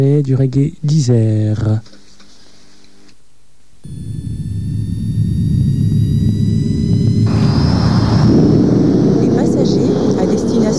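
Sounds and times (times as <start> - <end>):
speech: 0.0 - 2.0
airplane taking off on a flight to Pointe-à-Pitre: 3.8 - 10.7.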